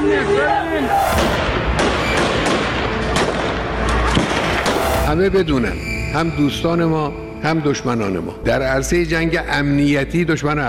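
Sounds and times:
speech: 0:00.1 - 0:01.3, 0:05.1 - 0:10.6
gunfire: 0:01.2 - 0:05.0.

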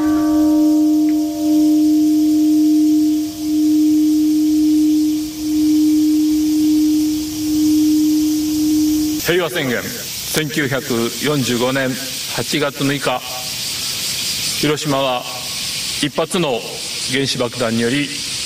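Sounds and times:
bells ringing in Hiroshima for atomic bombing anniversary: 0:00.0 - 0:11.7
speech: 0:09.5 - 0:13.3, 0:14.6 - 0:15.3, 0:16.0 - 0:18.2.

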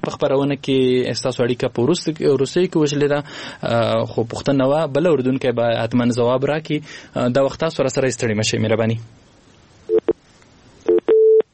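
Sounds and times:
speech: 0:00.1 - 0:09.2
telephone busy tone after a call is disconnected: 0:09.9 - 0:10.2, 0:10.9 - 0:11.5.

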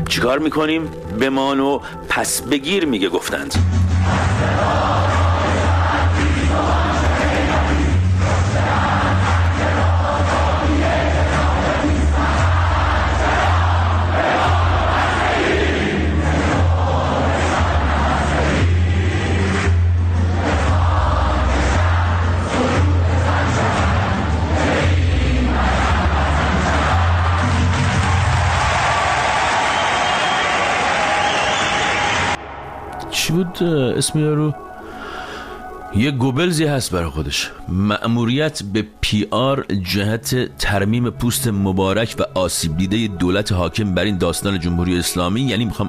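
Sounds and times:
speech: 0:00.1 - 0:05.1, 0:33.4 - 0:34.7, 0:35.9 - 0:45.8
students chanting slogans at a university protest: 0:03.9 - 0:33.0.

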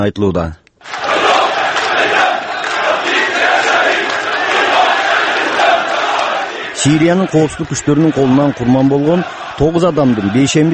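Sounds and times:
speech: 0:00.0 - 0:00.6, 0:06.8 - 0:10.7
crowd of activists shouting slogans at a funeral in Syria: 0:00.8 - 0:10.7.

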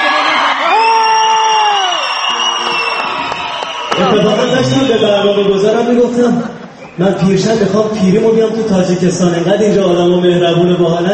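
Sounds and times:
audience cheering: 0:00.0 - 0:06.2
audience whistling loudly: 0:00.0 - 0:07.7
speech: 0:05.8 - 0:11.1.

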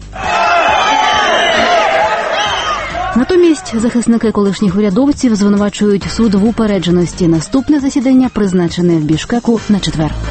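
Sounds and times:
courtroom crowd shouting angry demands for punishment: 0:00.0 - 0:04.0
speech: 0:03.7 - 0:10.2.

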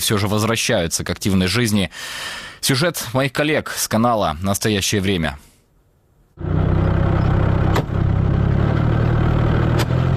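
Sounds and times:
speech: 0:00.0 - 0:05.5
Russian army remote mine-laying vehicle operating: 0:06.4 - 0:10.1.

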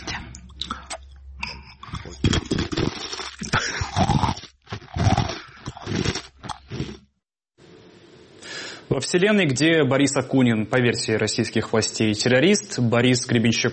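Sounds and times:
crunching a dry bread ring into microphone: 0:01.9 - 0:07.1
speech: 0:09.0 - 0:13.7.

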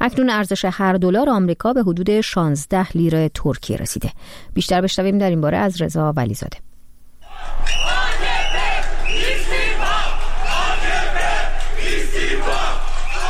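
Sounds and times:
speech: 0:00.0 - 0:06.7
protesters in Istanbul chanting for resignation of Erdogan: 0:07.2 - 0:13.2.

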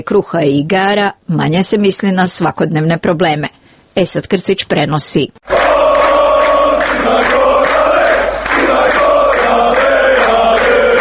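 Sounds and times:
speech: 0:00.0 - 0:05.6
football fans chanting at a European Championship qualifier: 0:05.4 - 0:10.9.

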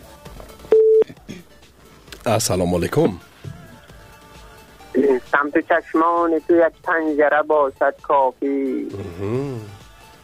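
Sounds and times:
telephone line tone as a caller is connected on a radio call-in show: 0:00.7 - 0:01.0
speech: 0:02.2 - 0:03.3, 0:05.4 - 0:09.8.

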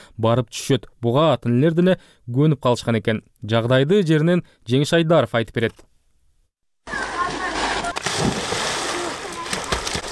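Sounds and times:
speech: 0:00.2 - 0:05.9
children's voices: 0:06.8 - 0:08.2, 0:08.8 - 0:10.0
children splashing while swimming in a canal running through a town: 0:06.9 - 0:10.0.

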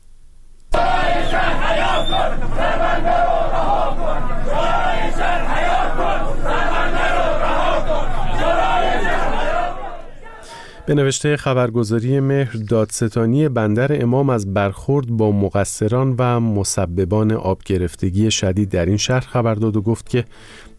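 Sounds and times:
protesting crowd chanting: 0:00.7 - 0:11.0
speech: 0:10.9 - 0:20.7.

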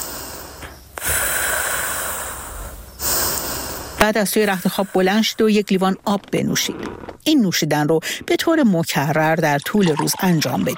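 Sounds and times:
deep breathing in and out: 0:00.0 - 0:05.4, 0:08.0 - 0:08.3
speech: 0:04.0 - 0:10.7.

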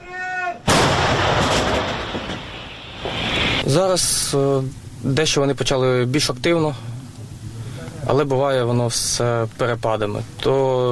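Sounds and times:
person shouting: 0:00.0 - 0:00.7
artillery gun firing: 0:00.7 - 0:03.2
speech: 0:03.7 - 0:06.9, 0:08.1 - 0:10.8.

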